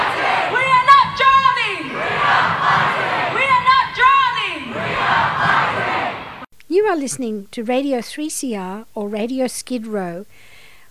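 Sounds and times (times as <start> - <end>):
crowd shouting at climate strike rally: 0.0 - 6.5
speech: 6.9 - 10.5.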